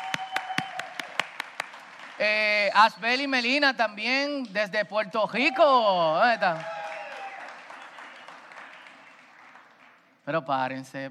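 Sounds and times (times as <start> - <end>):
audience applause: 0.0 - 2.3, 6.2 - 10.1
speech: 2.2 - 6.8, 10.3 - 11.0.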